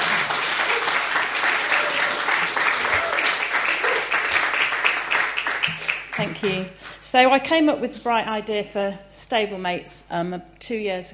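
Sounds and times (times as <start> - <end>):
audience applause: 0.0 - 6.6
speech: 6.2 - 11.1.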